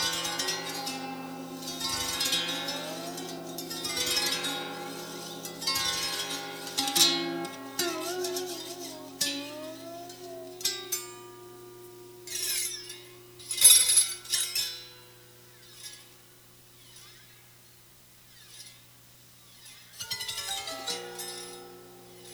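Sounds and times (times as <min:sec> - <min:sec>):
dulcimer finger pick slide: 0:00.0 - 0:14.8, 0:19.5 - 0:22.3.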